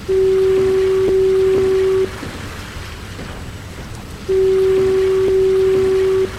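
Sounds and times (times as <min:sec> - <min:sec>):
lighthouse fog signal horn: 0:00.0 - 0:02.3, 0:04.3 - 0:06.3.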